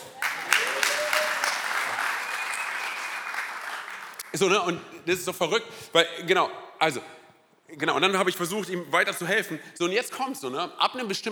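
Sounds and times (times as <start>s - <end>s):
audience applause: 0.0s - 4.2s
speech: 4.4s - 11.3s.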